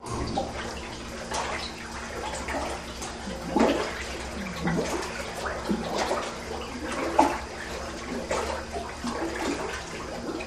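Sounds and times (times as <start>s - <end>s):
milk stirred in a large tan container, splashing: 0.0s - 10.4s.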